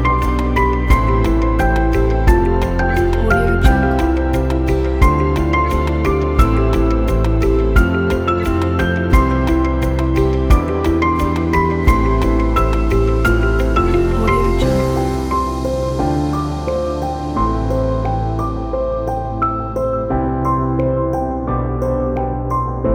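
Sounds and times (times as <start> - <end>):
relaxing corporate music: 0.0 - 22.9.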